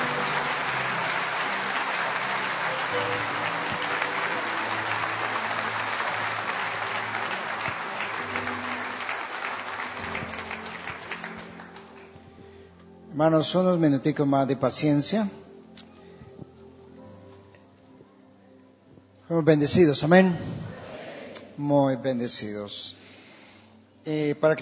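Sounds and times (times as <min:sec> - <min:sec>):
church congregation applauding: 0:00.0 - 0:12.7
speech: 0:13.2 - 0:15.4, 0:19.4 - 0:20.7, 0:21.6 - 0:23.0, 0:24.0 - 0:24.5.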